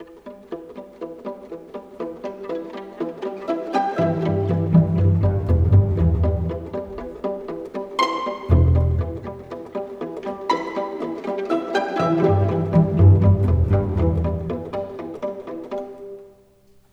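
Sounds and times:
cinematic orchestral music: 2.8 - 15.9.

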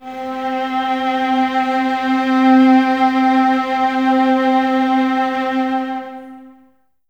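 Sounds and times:
violas string ensemble note C4: 0.0 - 6.7.

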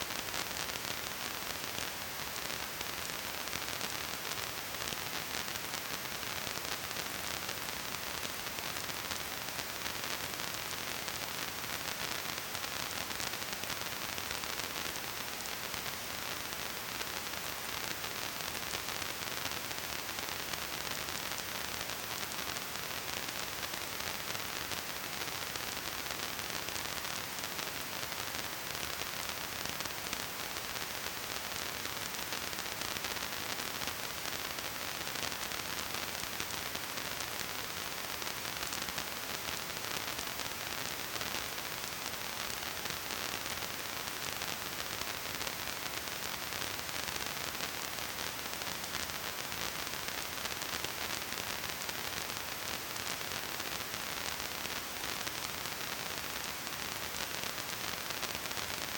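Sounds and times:
phonograph hiss noise: 0.0 - 58.9.

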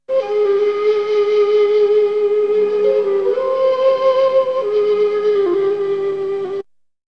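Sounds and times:
flute: 0.0 - 6.7.

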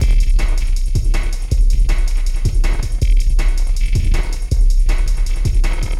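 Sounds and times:
noise beat: 0.0 - 5.9.

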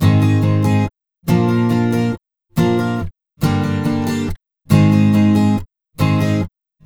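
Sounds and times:
acoustic pop guitar in C minor: 0.0 - 6.8.

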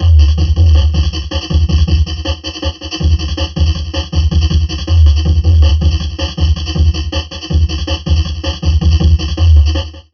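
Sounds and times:
heavily processed drum loop: 0.0 - 10.1.

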